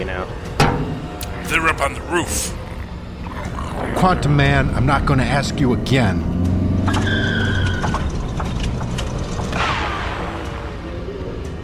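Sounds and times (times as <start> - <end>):
speech: 1.5 - 2.6, 3.4 - 7.4
car engine cutting out: 4.0 - 10.8
mechanical rattles: 6.9 - 10.5.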